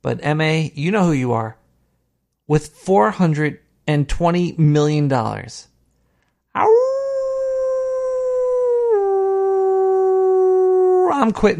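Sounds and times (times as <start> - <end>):
speech: 0.0 - 1.6, 2.5 - 5.7, 6.6 - 7.0, 11.1 - 11.5
person imitating a wolf howl: 6.6 - 11.2.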